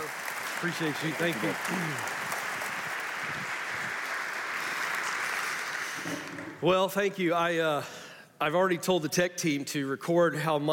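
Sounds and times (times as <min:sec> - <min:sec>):
audience applause greeting a guest speaker at a live event: 0:00.0 - 0:06.6
speech: 0:00.6 - 0:02.2, 0:06.1 - 0:10.7.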